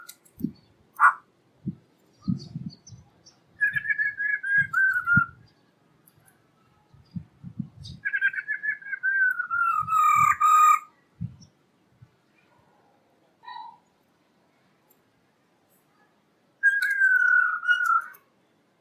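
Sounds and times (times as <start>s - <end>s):
black-throated laughingthrush song of whistles and a harsh burst: 3.6s - 5.4s, 7.9s - 10.9s, 16.6s - 18.2s.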